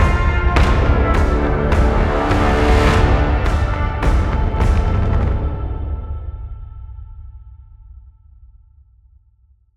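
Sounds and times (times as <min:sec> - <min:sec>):
battle music: 0:00.0 - 0:07.1.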